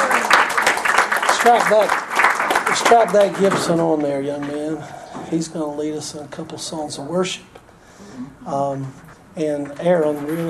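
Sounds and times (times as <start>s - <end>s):
audience at a church service clapping in welcome: 0.0s - 4.8s
speech: 1.4s - 2.1s, 2.7s - 7.6s, 8.2s - 10.4s.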